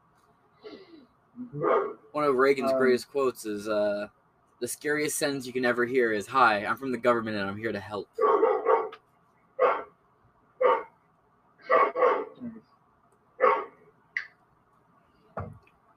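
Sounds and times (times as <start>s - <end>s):
speech: 1.5s - 8.3s
red-nose miniature pit bull barking: 1.6s - 2.0s, 8.2s - 9.0s, 9.6s - 9.9s, 10.6s - 10.9s, 11.6s - 12.4s, 13.4s - 13.8s.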